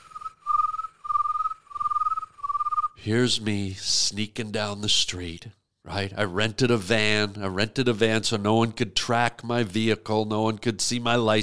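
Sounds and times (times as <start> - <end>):
crickets chirping at night: 0.0 - 3.0
speech: 3.0 - 11.4.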